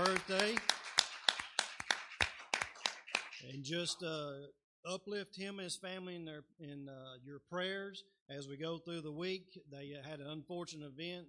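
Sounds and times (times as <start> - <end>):
audience hand clapping: 0.0 - 3.8
speech: 3.6 - 11.2.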